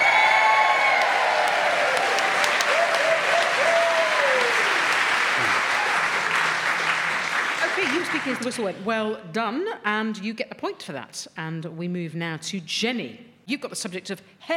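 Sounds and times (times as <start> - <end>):
audience applause and cheering: 0.0 - 8.6
speech: 8.3 - 14.5.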